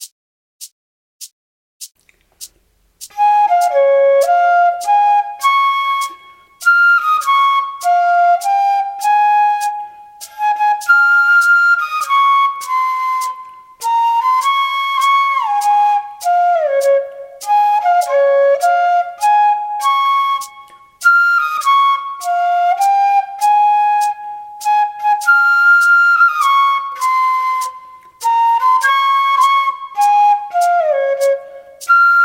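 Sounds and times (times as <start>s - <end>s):
flute: 3.0s - 32.2s.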